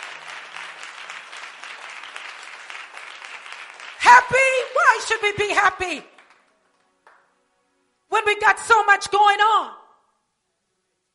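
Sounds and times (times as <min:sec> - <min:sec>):
audience clapping hands: 0:00.0 - 0:07.3
speech: 0:04.1 - 0:06.1, 0:08.2 - 0:09.8.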